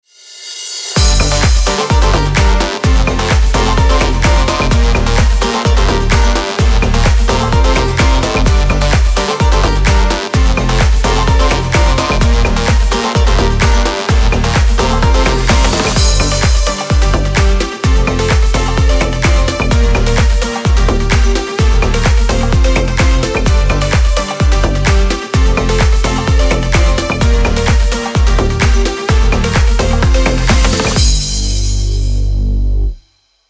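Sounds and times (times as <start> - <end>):
tropical house background music: 0.8 - 32.0.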